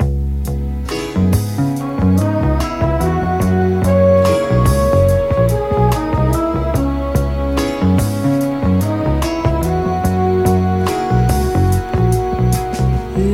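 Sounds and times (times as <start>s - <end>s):
phonk horn loops: 0.8s - 13.3s.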